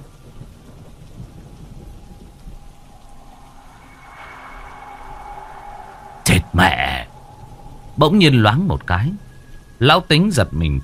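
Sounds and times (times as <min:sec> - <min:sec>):
rolling thunder: 0:00.0 - 0:10.6
steady rain: 0:00.0 - 0:10.8
speech: 0:06.6 - 0:07.0, 0:08.0 - 0:09.2, 0:09.8 - 0:10.8.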